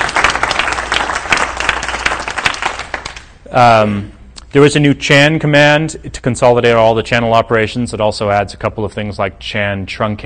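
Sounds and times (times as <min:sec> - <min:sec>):
crowd applauding: 0:00.0 - 0:03.3
speech: 0:03.5 - 0:10.2.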